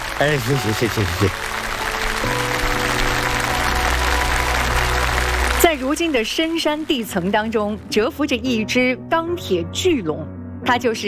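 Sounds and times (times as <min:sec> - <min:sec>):
audience applause: 0:00.0 - 0:07.7
speech: 0:00.2 - 0:01.6, 0:06.0 - 0:11.0.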